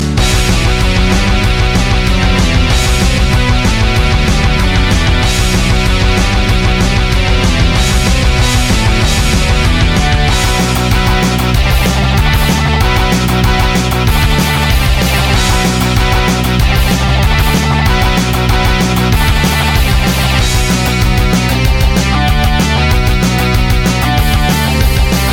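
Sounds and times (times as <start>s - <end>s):
rock music: 0.0s - 25.3s.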